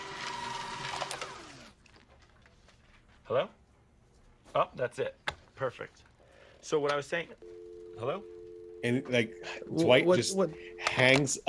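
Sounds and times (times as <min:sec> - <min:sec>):
paper shredder shredding paper: 0:00.0 - 0:02.0
speech: 0:03.3 - 0:03.6, 0:04.5 - 0:11.4.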